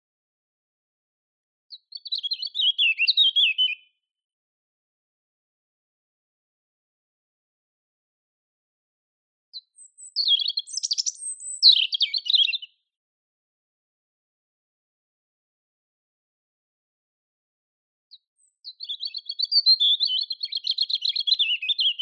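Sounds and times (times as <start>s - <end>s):
European robin song: 1.7s - 4.0s, 9.5s - 12.9s, 18.1s - 22.0s.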